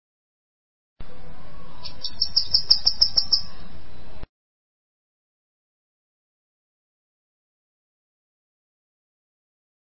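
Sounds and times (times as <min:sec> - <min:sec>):
Bananaquit song: 0:01.0 - 0:04.3.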